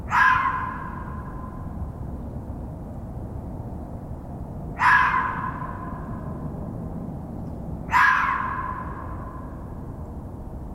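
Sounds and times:
sharp calls, possibly fox barks: 0.1s - 1.6s, 4.8s - 6.4s, 7.9s - 9.7s.

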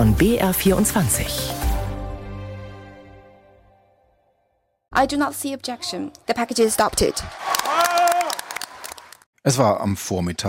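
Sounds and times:
speech: 0.0s - 1.6s, 5.0s - 7.8s, 9.4s - 10.4s
World Nature Summit delegates cheering: 6.6s - 9.2s.

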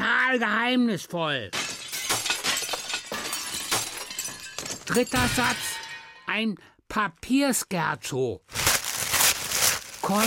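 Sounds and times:
speech: 0.3s - 1.6s, 4.9s - 5.7s, 6.3s - 8.6s, 10.0s - 10.2s
glass shards breaking and clinking: 1.5s - 6.3s.

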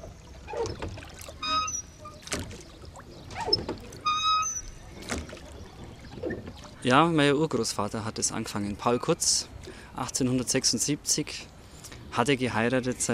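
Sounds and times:
rowing boat oars on water: 0.0s - 7.6s
speech: 6.8s - 11.5s, 12.2s - 13.1s.

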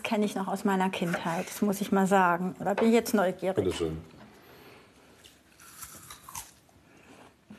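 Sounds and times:
speech: 0.1s - 4.2s
soft chewing: 4.3s - 7.5s
biting into an Ontario apple, an old sour variety: 5.2s - 6.7s.

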